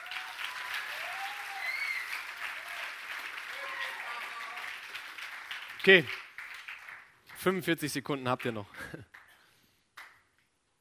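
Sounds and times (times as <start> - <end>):
audience applause: 0.0 - 7.6
speech: 5.8 - 6.2, 7.4 - 9.2.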